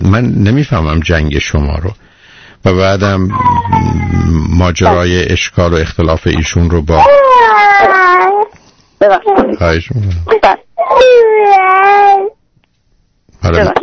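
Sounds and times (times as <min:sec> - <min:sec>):
speech: 0:00.1 - 0:12.3, 0:13.4 - 0:13.8
baby crying: 0:03.3 - 0:05.0, 0:07.0 - 0:08.5, 0:10.8 - 0:12.4.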